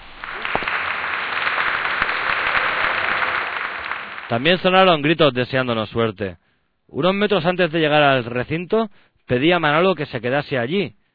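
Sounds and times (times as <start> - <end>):
crowd applauding: 0.0 - 5.1
speech: 4.3 - 11.0.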